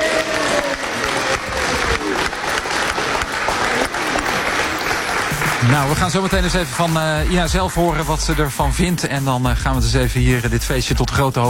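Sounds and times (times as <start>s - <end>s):
crowd applause: 0.0s - 7.5s
speech: 5.7s - 11.4s.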